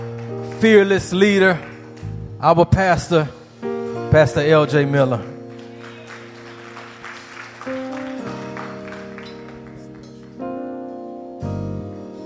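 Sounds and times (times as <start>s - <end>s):
audience clapping: 0.0s - 2.4s, 5.3s - 10.7s
speech: 0.6s - 1.7s, 2.4s - 3.4s, 4.1s - 5.3s.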